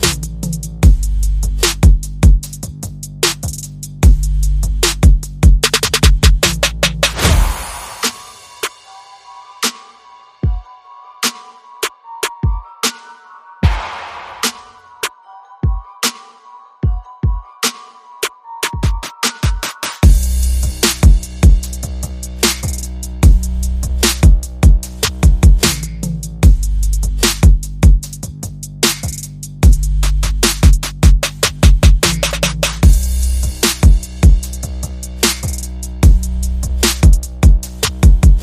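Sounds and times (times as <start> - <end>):
bass: 0.0 - 8.0, 20.0 - 38.4
drums: 0.0 - 11.6, 13.6 - 16.2, 18.6 - 38.4.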